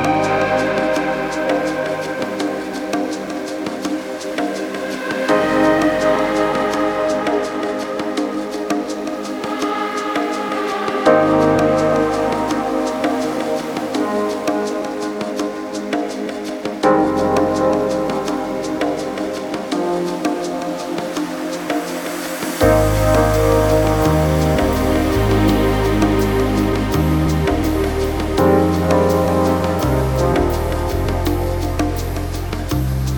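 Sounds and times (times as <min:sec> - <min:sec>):
chillout downtempo electronica grooves: 0:00.0 - 0:33.1.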